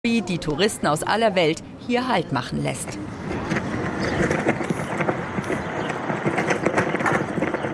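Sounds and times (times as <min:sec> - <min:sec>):
speech: 0:00.0 - 0:03.3
US flag flapping in the wind in the Mojave Desert: 0:03.4 - 0:07.7.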